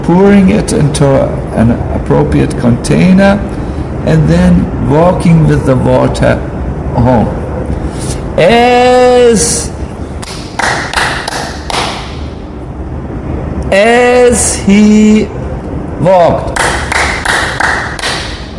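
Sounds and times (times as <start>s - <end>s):
speech: 0.1s - 7.4s, 7.9s - 10.4s, 13.7s - 15.4s, 16.0s - 16.5s
hand clapping: 10.2s - 12.2s, 16.5s - 18.5s.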